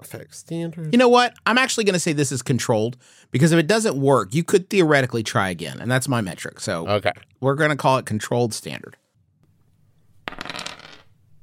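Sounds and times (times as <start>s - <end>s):
speech: 0.0s - 9.0s
dice clattering across a hard surface: 10.2s - 11.2s.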